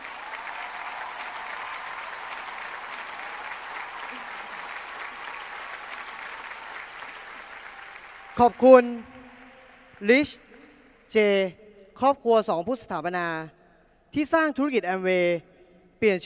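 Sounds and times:
hall audience applause: 0.0 - 10.6
speech: 8.4 - 9.1, 10.0 - 10.5, 11.1 - 16.2.

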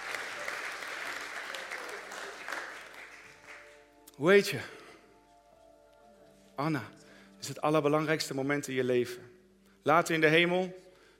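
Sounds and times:
audience applause: 0.0 - 3.9
speech: 4.2 - 4.8, 6.6 - 10.8.

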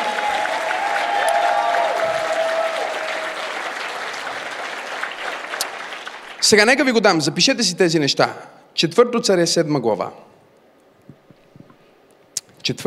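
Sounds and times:
audience applause: 0.0 - 6.8
speech: 6.5 - 10.3, 12.7 - 12.8.

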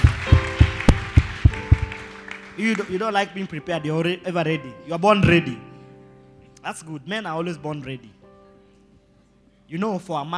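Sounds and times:
clapping: 0.0 - 3.1
speech: 2.6 - 5.7, 6.6 - 8.2, 9.7 - 10.3.

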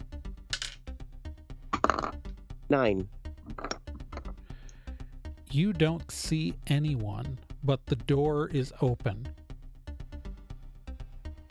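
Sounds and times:
d10 die rolling: 0.5 - 0.8
speech: 2.7 - 3.2, 5.5 - 9.4.

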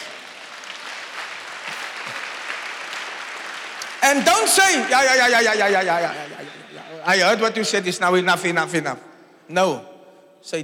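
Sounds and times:
audience applause: 0.0 - 6.7
speech: 4.1 - 6.3, 7.0 - 10.6.

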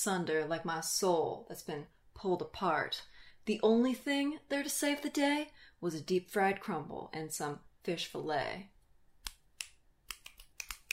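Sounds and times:
speech: 0.0 - 8.7
finger snapping in approval: 9.2 - 10.9.

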